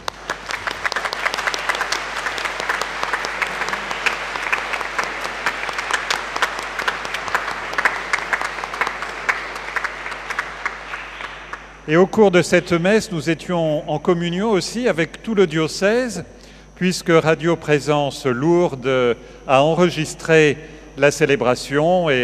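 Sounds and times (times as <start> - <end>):
audience applause: 0.0 - 11.7
speech: 11.9 - 22.2.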